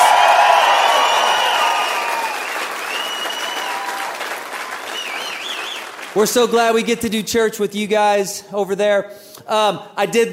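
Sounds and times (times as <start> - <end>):
crowd whooping and shouting: 0.0 - 5.9
large crowd clapping: 0.0 - 6.6
speech: 6.2 - 10.3.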